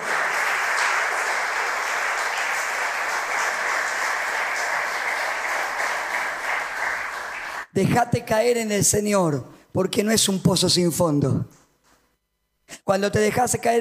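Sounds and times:
audience applause: 0.0s - 7.7s
speech: 7.8s - 11.6s, 12.9s - 13.7s.

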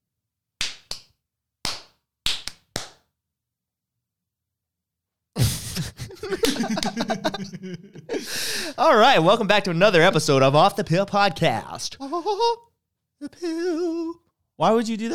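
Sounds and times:
hand clapping: 0.6s - 3.1s, 6.2s - 7.4s
laughter: 5.4s - 8.8s, 12.0s - 12.6s
speech: 5.8s - 15.1s.

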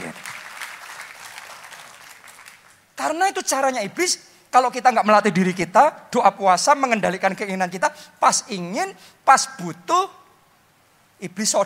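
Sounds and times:
audience applauding: 0.0s - 2.8s
speech: 3.0s - 10.2s, 11.2s - 11.6s.

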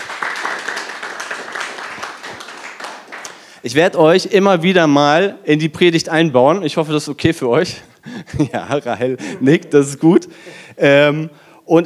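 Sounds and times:
audience applause: 0.0s - 3.5s
speech: 3.6s - 11.8s
laughter: 8.2s - 10.7s.

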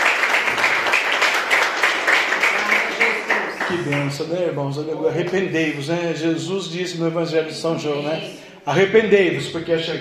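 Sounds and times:
audience applause: 0.0s - 4.2s
speech: 3.7s - 10.0s.

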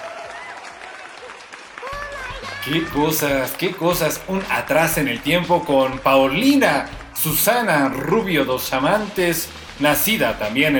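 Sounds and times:
applause: 0.0s - 8.5s
speech: 2.6s - 10.7s.

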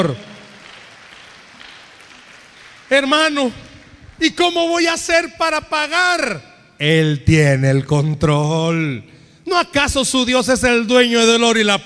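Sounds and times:
speech: 0.0s - 0.3s, 2.9s - 11.8s
audience applause: 0.0s - 4.6s.

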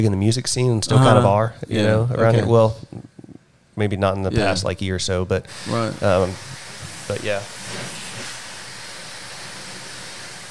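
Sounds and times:
speech: 0.0s - 3.1s, 3.8s - 8.0s
pressure washer spraying outside: 5.5s - 10.5s.

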